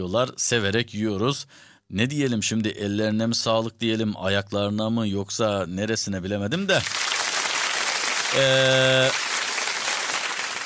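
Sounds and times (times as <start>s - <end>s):
speech: 0.0s - 7.1s, 8.3s - 9.2s
applause sound effect: 6.9s - 10.6s.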